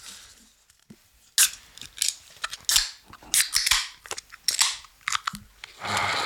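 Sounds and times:
Heineken beer cans being opened: 1.4s - 6.2s.

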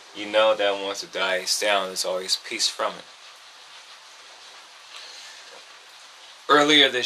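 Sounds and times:
heavy rain: 0.0s - 7.0s
speech: 0.2s - 3.2s, 6.6s - 7.0s.

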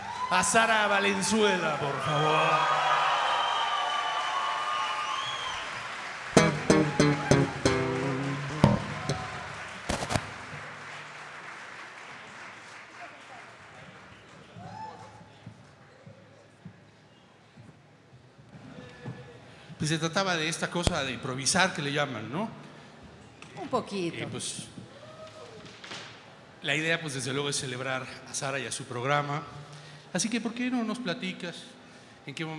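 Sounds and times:
speech: 0.3s - 2.8s, 19.9s - 22.7s, 23.7s - 24.8s, 26.6s - 32.5s
audience applause: 2.7s - 8.3s, 8.9s - 14.8s.

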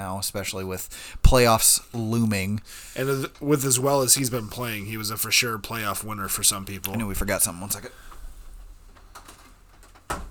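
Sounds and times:
speech: 0.0s - 8.2s
door creaking: 3.0s - 10.2s
door slamming shut: 9.1s - 10.2s.

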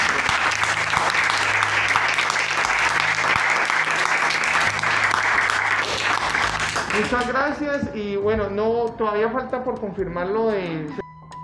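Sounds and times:
applause: 0.0s - 7.6s
speech: 7.0s - 11.0s.

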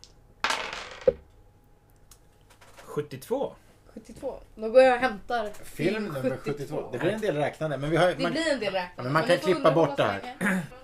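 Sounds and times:
dice rattling and clattering across a hard surface: 0.4s - 1.2s
speech: 3.0s - 10.8s.

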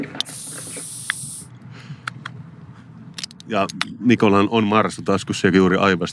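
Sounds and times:
energy drink can opening with fizzing hiss: 0.1s - 1.5s
speech: 3.5s - 6.1s.

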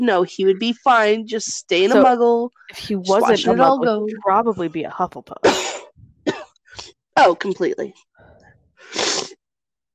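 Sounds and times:
speech: 0.0s - 5.8s, 7.2s - 8.1s
person sniffling from a cold: 8.8s - 9.4s.

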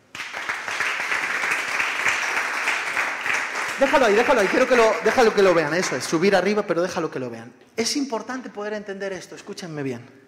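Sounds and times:
audience applause: 0.1s - 6.2s
speech: 3.8s - 10.2s.

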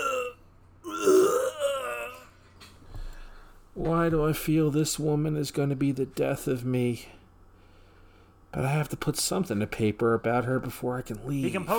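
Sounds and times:
man vomiting into a trash can: 0.0s - 2.3s
speech: 3.8s - 7.2s, 8.5s - 11.7s.

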